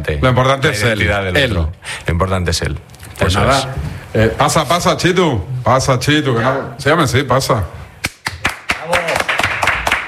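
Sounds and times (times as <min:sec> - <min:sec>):
speech: 0:00.0 - 0:07.8
canned applause sound effect: 0:08.3 - 0:10.0.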